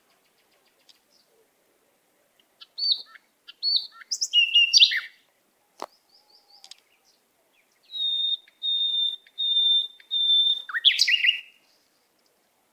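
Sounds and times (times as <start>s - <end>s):
canary singing whistled notes and trills: 2.6s - 5.2s, 7.7s - 11.6s.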